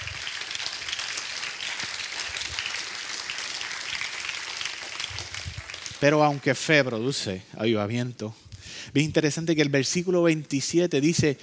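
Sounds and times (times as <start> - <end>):
crowd clapping: 0.0 - 7.1
speech: 6.0 - 11.4.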